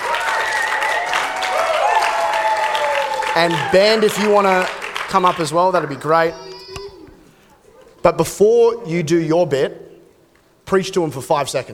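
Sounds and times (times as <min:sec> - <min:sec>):
audience applause as a board director walks on stage: 0:00.0 - 0:06.4
speech: 0:03.4 - 0:06.4, 0:08.0 - 0:09.8, 0:10.7 - 0:11.7.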